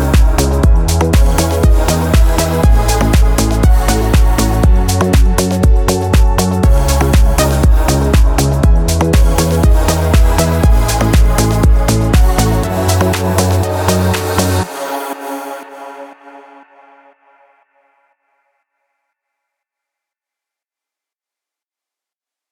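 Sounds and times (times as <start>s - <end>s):
instrumental music: 0.0s - 16.4s.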